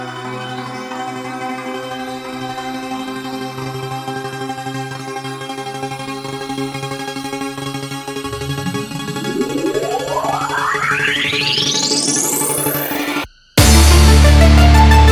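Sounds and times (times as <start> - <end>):
remix music: 8.2 - 15.0.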